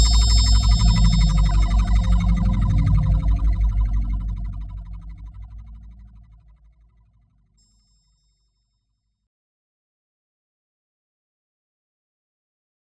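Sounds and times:
sample and hold bass: 0.0s - 7.5s.

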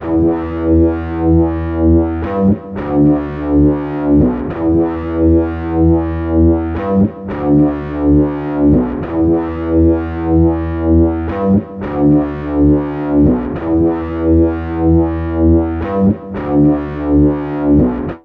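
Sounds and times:
bass guitar loops: 0.0s - 18.2s.

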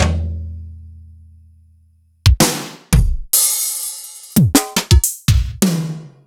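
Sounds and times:
Yamaha RY20 drum machine samples sliced: 2.3s - 6.1s.

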